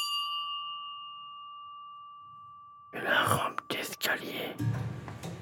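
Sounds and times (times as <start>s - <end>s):
small church bell ringing inside a church: 0.0s - 2.9s
speech: 2.9s - 4.9s.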